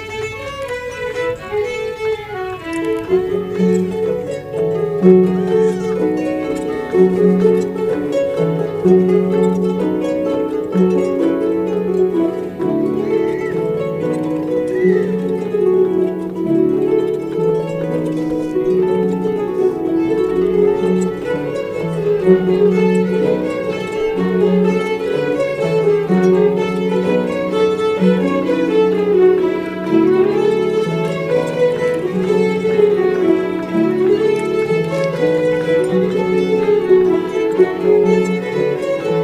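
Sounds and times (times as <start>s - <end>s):
harps: 0.0s - 39.2s
violins: 0.0s - 39.2s.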